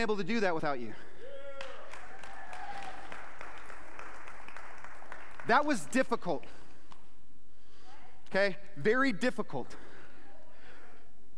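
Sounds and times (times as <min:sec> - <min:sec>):
speech: 0:00.0 - 0:01.1, 0:05.5 - 0:06.6, 0:08.3 - 0:09.9
audience clapping: 0:01.5 - 0:07.1.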